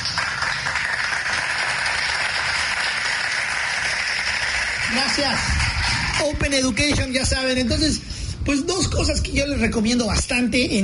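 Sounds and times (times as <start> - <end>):
crowd applause: 0.0 - 6.4
speech: 5.0 - 5.6, 6.2 - 10.8.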